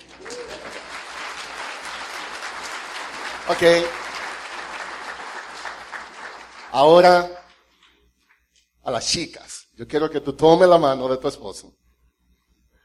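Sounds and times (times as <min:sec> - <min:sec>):
audience applause: 0:00.0 - 0:07.2
speech: 0:03.5 - 0:04.0, 0:06.8 - 0:07.4, 0:08.9 - 0:11.8.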